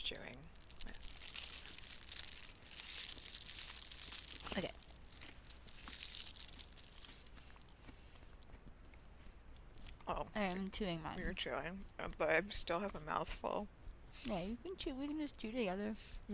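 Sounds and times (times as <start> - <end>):
speech: 0.1 - 1.0, 4.6 - 4.8, 10.1 - 16.3
snack package being opened, crinkling: 0.1 - 9.9.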